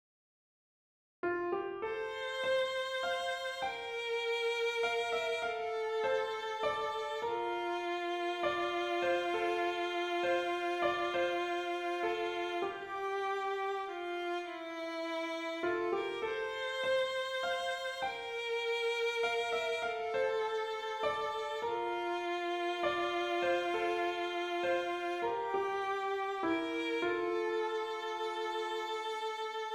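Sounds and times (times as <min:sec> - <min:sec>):
melody with harmony: 0:01.5 - 0:29.7.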